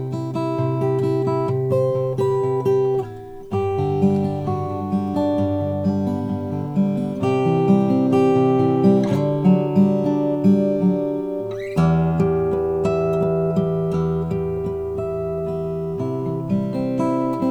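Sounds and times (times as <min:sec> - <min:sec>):
cutaway acoustic guitar with Madagascar rosewood: 0:00.0 - 0:17.4.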